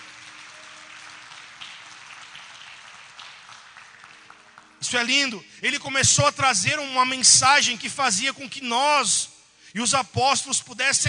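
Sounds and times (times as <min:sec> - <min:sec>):
audience applause: 0:00.0 - 0:04.9
speech: 0:04.8 - 0:11.0.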